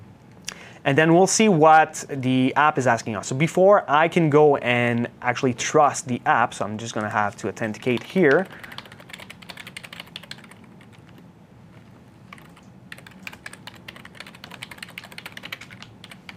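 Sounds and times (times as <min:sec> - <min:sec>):
speech: 0:00.8 - 0:08.7
rapid typing on a computer keyboard: 0:07.0 - 0:16.3.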